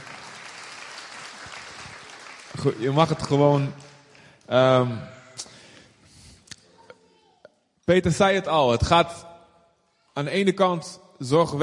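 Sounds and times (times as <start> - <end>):
audience clapping: 0.0 - 4.7
speech: 2.6 - 3.9, 4.5 - 5.2, 7.9 - 9.3, 10.2 - 11.6.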